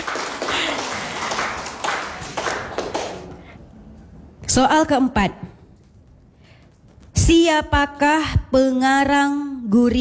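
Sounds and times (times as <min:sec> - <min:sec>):
audience applause at a quiz contest: 0:00.0 - 0:03.4
speech: 0:04.5 - 0:05.5, 0:07.3 - 0:09.9.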